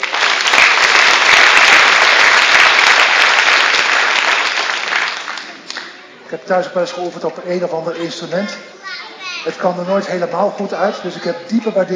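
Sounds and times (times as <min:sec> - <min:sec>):
applause: 0:00.0 - 0:06.0
speech: 0:06.3 - 0:08.8, 0:09.4 - 0:11.9.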